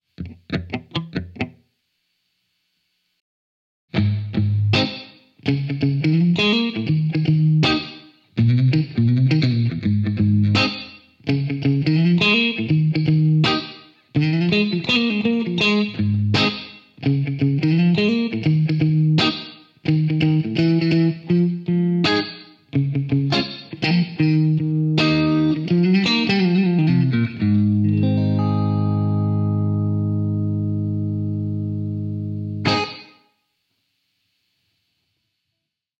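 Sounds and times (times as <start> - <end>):
funky riffs: 0.2 - 1.6, 3.9 - 33.3.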